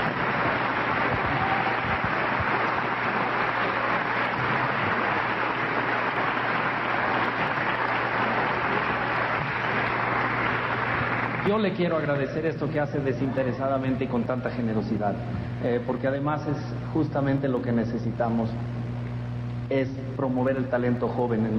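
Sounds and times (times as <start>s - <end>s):
audience applause: 0.0s - 15.0s
speech: 11.5s - 18.7s, 19.7s - 21.5s.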